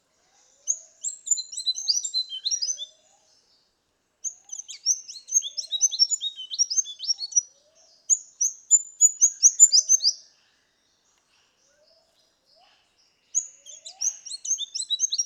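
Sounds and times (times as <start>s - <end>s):
Rufous fantail's high squeaky twittering: 0.7s - 2.9s, 4.3s - 7.5s, 8.1s - 10.2s, 13.4s - 15.2s.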